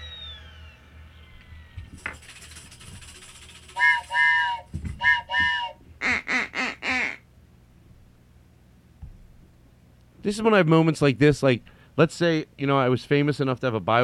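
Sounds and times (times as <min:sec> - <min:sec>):
duck whistle quacking: 0:03.7 - 0:07.3
speech: 0:10.3 - 0:14.0.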